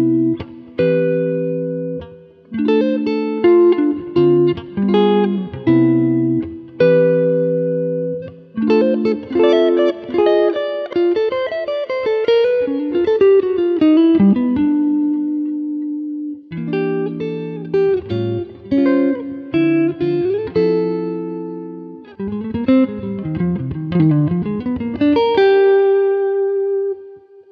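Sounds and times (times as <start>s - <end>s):
smooth jazz guitars: 0.0s - 27.5s.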